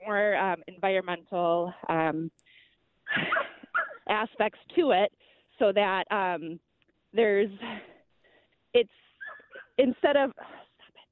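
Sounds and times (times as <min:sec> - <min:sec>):
speech: 0:00.8 - 0:02.6, 0:04.1 - 0:07.9, 0:08.7 - 0:09.1, 0:09.8 - 0:10.6
dog barking and yipping: 0:03.2 - 0:04.0, 0:09.2 - 0:09.8.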